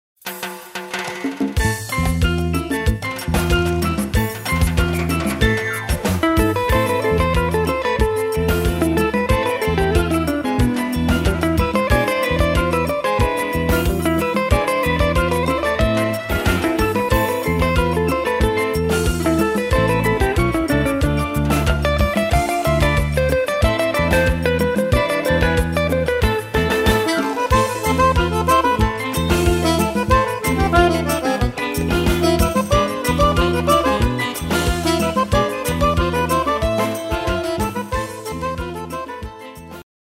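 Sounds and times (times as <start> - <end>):
guitar: 0.3 - 39.9.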